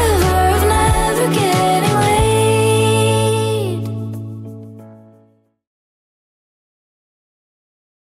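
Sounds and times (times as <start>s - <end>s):
Top40 pop music at 92 bpm: 0.0s - 4.8s.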